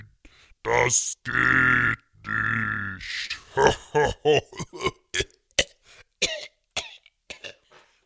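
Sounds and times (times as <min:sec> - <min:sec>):
speech: 0:00.8 - 0:02.0
coughing: 0:03.4 - 0:07.8.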